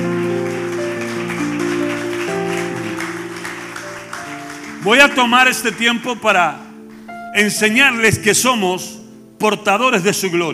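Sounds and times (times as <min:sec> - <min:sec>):
audience applause: 0:00.0 - 0:06.2
speech: 0:04.8 - 0:06.6, 0:07.4 - 0:10.5.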